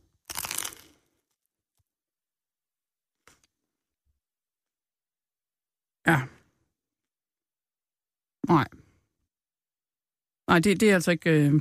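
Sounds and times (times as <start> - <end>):
person taking a bite of canned foie gras: 0.0 - 1.2
speech: 6.1 - 6.3, 8.5 - 8.8, 10.5 - 11.5.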